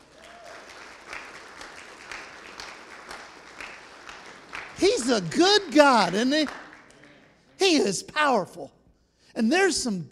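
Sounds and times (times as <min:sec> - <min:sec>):
audience applause: 0:00.0 - 0:07.1
speech: 0:04.8 - 0:06.6, 0:07.6 - 0:08.8, 0:09.4 - 0:10.1.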